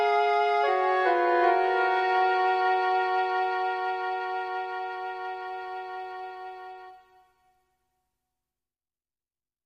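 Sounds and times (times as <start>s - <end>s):
English horn: 0.0s - 7.3s
flute: 0.0s - 7.7s.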